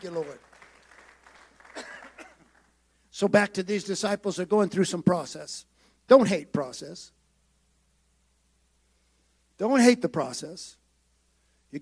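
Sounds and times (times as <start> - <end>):
speech: 0.0 - 0.5, 3.2 - 7.2, 9.6 - 10.8
audience clapping: 0.0 - 2.8.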